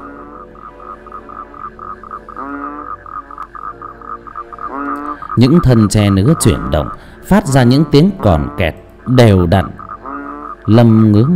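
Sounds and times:
frogs croaking at night: 0:00.0 - 0:11.3
speech: 0:05.4 - 0:09.8, 0:10.7 - 0:11.3.

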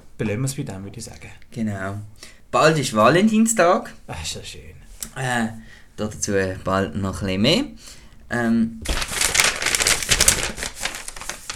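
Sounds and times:
speech: 0:00.2 - 0:09.1
paper being folded into a heart: 0:08.8 - 0:11.5.

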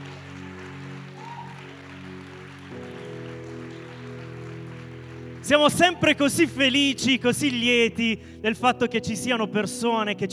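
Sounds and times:
audience applause: 0:00.0 - 0:06.2
speech: 0:05.4 - 0:10.3.

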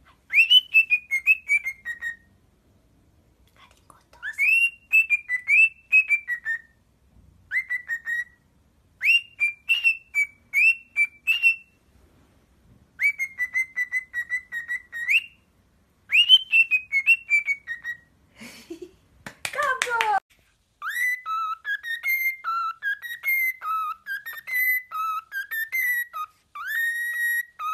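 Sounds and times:
cockatiel whistled song: 0:00.3 - 0:02.4, 0:04.2 - 0:06.8, 0:07.5 - 0:08.4, 0:09.0 - 0:11.8, 0:13.0 - 0:15.5, 0:16.1 - 0:18.2, 0:20.8 - 0:27.7.

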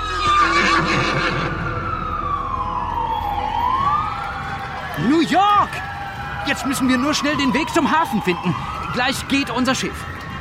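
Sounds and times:
horse giving a loud quavering whinny: 0:00.0 - 0:01.6
long wailing siren sliding down and up in pitch: 0:00.0 - 0:10.4
speech: 0:06.5 - 0:10.1.

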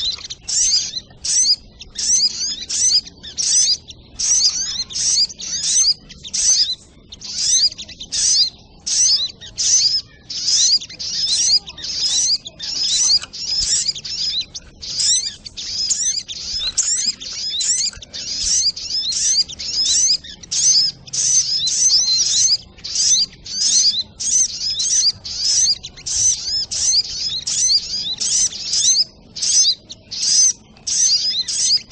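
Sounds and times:
brown-throated sunbird singing: 0:00.0 - 0:31.9.

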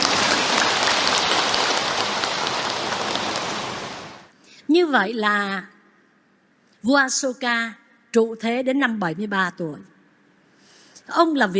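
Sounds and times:
crowd at a Buddhist dharma talk clapping: 0:00.0 - 0:04.3
speech: 0:04.8 - 0:05.7, 0:06.8 - 0:09.9, 0:11.1 - 0:11.5.

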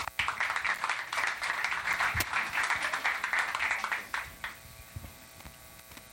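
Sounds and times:
audience applause at B-Sides SF security conference: 0:00.0 - 0:04.3.

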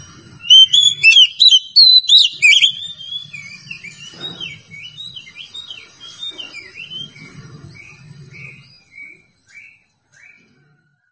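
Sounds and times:
Oriental magpie-robin singing: 0:00.4 - 0:10.3.

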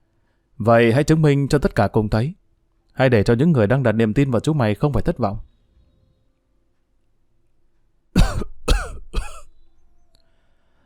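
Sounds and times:
speech: 0:00.6 - 0:02.4, 0:03.0 - 0:05.5
man's dry rasping coughing fit coughing up blood: 0:08.2 - 0:09.5.

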